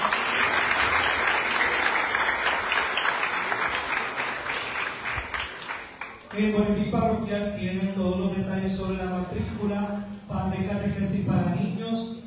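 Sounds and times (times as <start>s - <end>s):
audience applause: 0.0s - 6.4s
speech: 6.4s - 12.2s.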